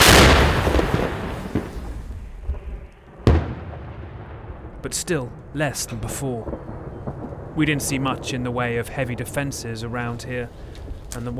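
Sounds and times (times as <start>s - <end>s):
donated Paladin self-propelled howitzer firing American artillery rounds: 0.0s - 8.3s
speech: 4.8s - 6.9s, 7.6s - 11.3s.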